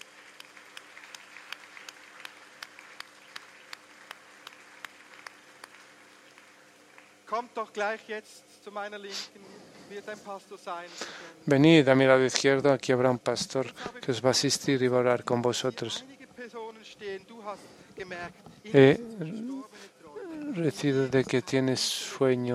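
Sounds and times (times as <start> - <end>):
applause for those who prayed: 0.0 - 7.7
speech: 7.3 - 19.5, 20.6 - 22.5.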